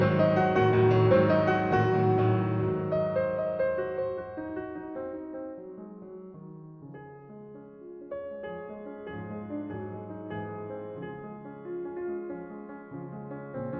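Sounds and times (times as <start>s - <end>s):
adagio in D flat major: 0.0s - 4.9s.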